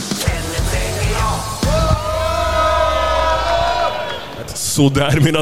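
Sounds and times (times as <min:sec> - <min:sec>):
crowd cheering and yelling at a motorcycle fair: 0:00.2 - 0:04.8
strong sustained shout: 0:00.8 - 0:04.5
speech: 0:04.8 - 0:05.4.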